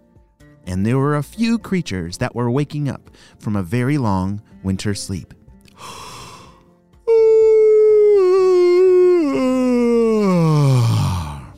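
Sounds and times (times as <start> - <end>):
speech: 0.7 - 6.1
spring peeper tree frog yawning: 7.1 - 11.5.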